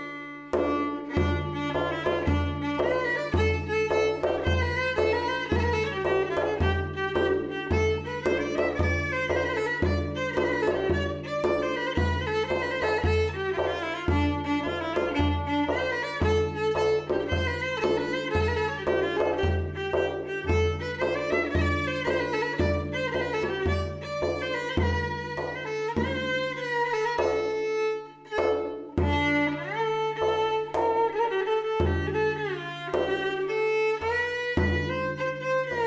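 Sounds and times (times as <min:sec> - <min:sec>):
Hüseyni saz semâî instrumental piece: 0:00.0 - 0:35.8.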